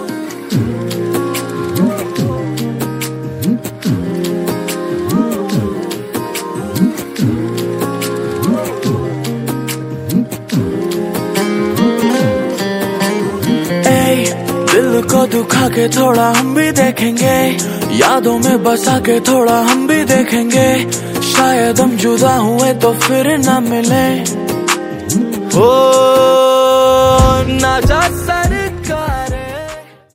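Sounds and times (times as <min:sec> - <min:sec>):
instrumental music: 0:00.0 - 0:30.1.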